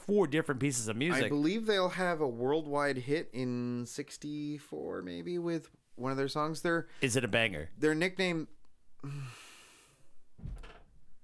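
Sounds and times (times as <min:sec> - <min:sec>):
speech: 0:00.1 - 0:09.5
door slamming: 0:10.4 - 0:11.0.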